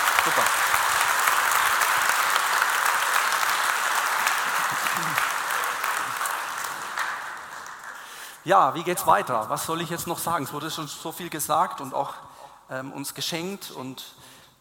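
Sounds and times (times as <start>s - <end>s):
audience applause: 0.0s - 8.4s
speech: 0.2s - 0.7s, 8.4s - 14.3s.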